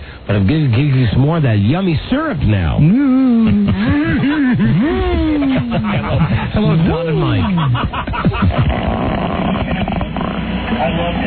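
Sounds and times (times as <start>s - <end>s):
speech: 0.3s - 9.1s, 10.8s - 11.2s
laughter: 3.1s - 10.4s
recorded fart: 8.4s - 10.8s.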